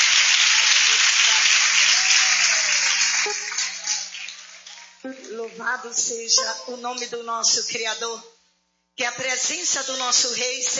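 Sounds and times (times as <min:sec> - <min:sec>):
audience applauding: 0:00.0 - 0:05.6
speech: 0:05.6 - 0:08.3, 0:09.0 - 0:10.7.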